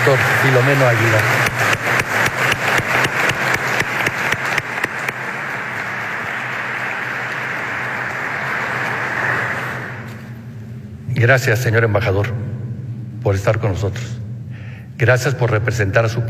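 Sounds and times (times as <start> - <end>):
audience applause: 0.0 - 10.4
speech: 0.1 - 1.6, 11.2 - 12.5, 13.2 - 14.2, 15.0 - 16.2.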